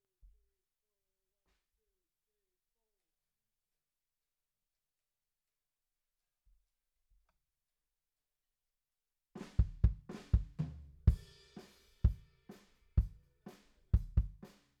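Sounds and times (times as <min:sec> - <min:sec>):
bass drum: 0:09.4 - 0:11.4, 0:14.0 - 0:14.4.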